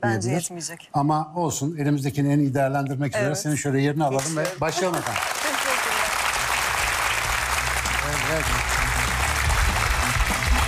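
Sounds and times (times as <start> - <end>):
speech: 0.0 - 5.5, 8.4 - 8.7
audience applause: 4.4 - 10.6.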